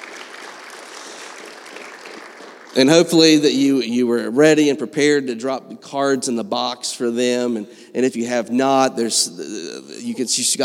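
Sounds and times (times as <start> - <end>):
audience hand clapping: 0.0 - 3.4
speech: 2.8 - 10.6.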